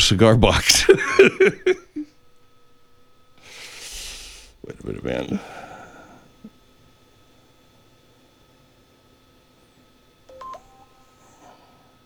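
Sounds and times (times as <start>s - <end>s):
speech: 0.1s - 1.7s, 4.9s - 5.6s
laughter: 0.6s - 2.1s
phone text tones: 10.3s - 11.2s.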